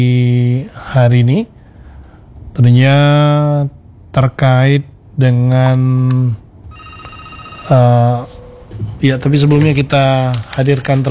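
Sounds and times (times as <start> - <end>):
speech: 0.0 - 1.6, 2.6 - 6.4, 7.7 - 11.1
low hum: 0.0 - 11.1
telephone ringing for an incoming caller: 6.7 - 8.6.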